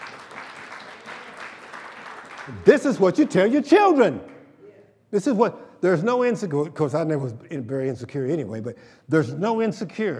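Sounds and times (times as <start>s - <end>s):
crowd clapping: 0.0s - 3.4s
speech: 2.5s - 4.3s, 5.1s - 10.1s.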